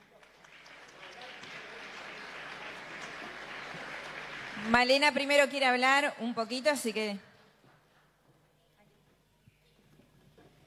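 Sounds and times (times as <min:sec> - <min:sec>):
audience applause: 0:00.0 - 0:05.6
speech: 0:04.6 - 0:07.3.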